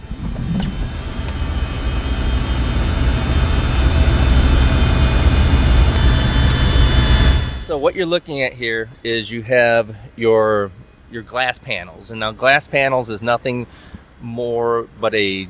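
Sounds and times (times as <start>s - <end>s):
Cirrus SR-20 propeller aircraft engine starting up: 0.0s - 8.0s
speech: 7.9s - 15.4s.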